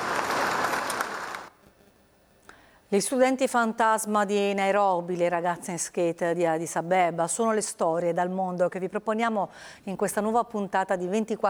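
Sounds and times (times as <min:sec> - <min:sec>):
applause in a hall at a space-agency gathering: 0:00.0 - 0:01.5
speech: 0:02.9 - 0:11.4.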